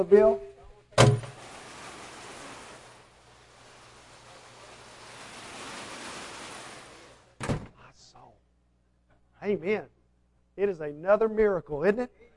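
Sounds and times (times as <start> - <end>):
speech: 0.0 - 0.5, 9.5 - 10.0, 10.6 - 12.3
rain falling: 1.1 - 7.3.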